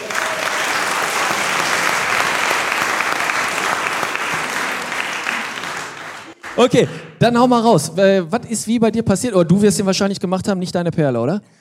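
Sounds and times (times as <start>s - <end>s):
audience applause: 0.0s - 7.0s
speech: 6.6s - 11.5s.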